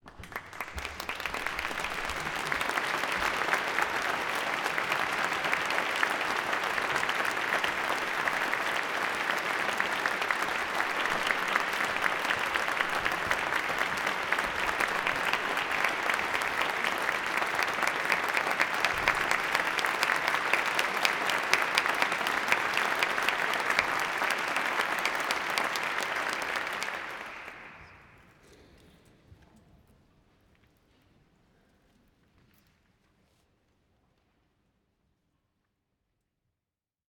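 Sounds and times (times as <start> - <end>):
audience applause in a large hall: 0.0 - 28.3.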